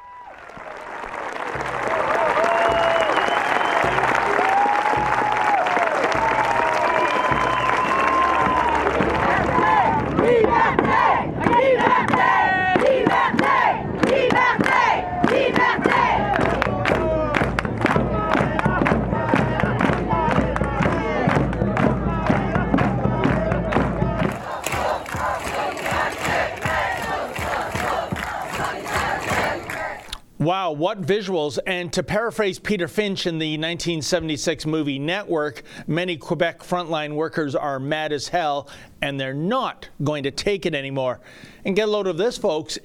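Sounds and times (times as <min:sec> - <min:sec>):
clapping: 0:00.0 - 0:10.2, 0:10.8 - 0:22.4, 0:23.2 - 0:30.2
protest march crowd chanting and cheering: 0:00.0 - 0:30.2
whistles: 0:02.4 - 0:04.2, 0:06.9 - 0:08.6
speech: 0:30.8 - 0:42.8.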